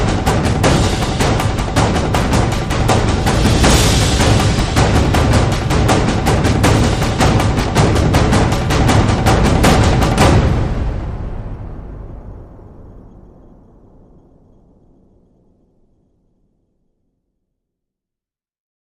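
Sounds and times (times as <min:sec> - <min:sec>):
drums: 0:00.0 - 0:12.4.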